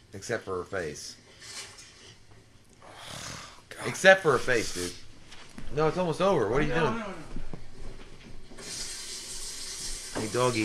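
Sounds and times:
speech: 0.1 - 1.6, 3.8 - 5.0, 5.6 - 7.4, 10.2 - 10.6
shower running: 8.6 - 10.6.

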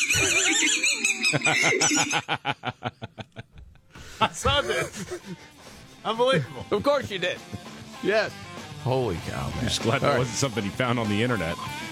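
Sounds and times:
swallowed squeaker toy squeaking: 0.0 - 1.5
laughter: 0.0 - 5.5, 6.2 - 8.0
speech: 1.3 - 3.2, 4.2 - 11.8.

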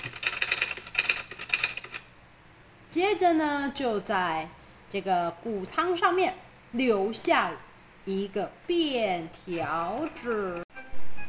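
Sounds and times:
typewriter typing: 0.0 - 2.1
speech: 3.0 - 10.6.

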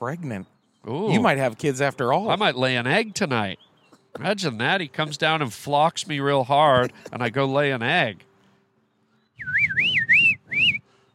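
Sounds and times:
speech: 0.0 - 8.3
person whistling finch-like call: 9.4 - 10.8.

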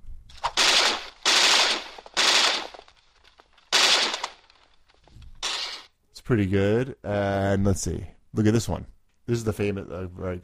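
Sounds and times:
RoboCop movie automatic gunfire effect from a free soundboard: 0.5 - 2.9, 3.7 - 4.5
speech: 6.3 - 10.4.

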